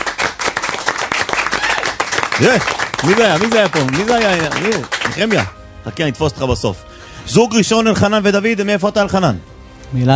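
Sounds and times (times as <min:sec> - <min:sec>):
studio audience clapping: 0:00.0 - 0:05.6
speech: 0:02.4 - 0:10.1.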